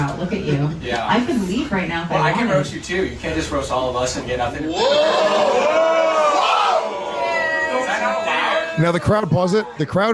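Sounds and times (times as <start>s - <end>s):
speech: 0.2s - 6.0s, 8.8s - 10.1s
audience going whoa: 4.7s - 9.1s.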